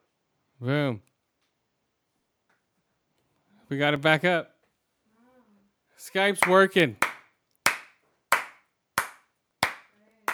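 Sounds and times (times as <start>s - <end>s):
speech: 0.6s - 1.1s, 3.7s - 4.5s, 6.0s - 7.0s
hand clapping: 6.4s - 10.3s.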